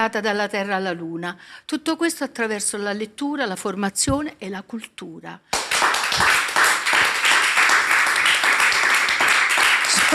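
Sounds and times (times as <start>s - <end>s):
speech: 0.0s - 5.6s
studio audience applause: 5.6s - 10.1s.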